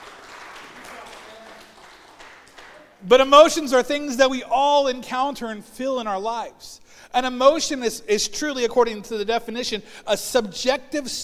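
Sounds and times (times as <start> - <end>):
group clapping: 0.0 - 3.0
speech: 3.0 - 11.2.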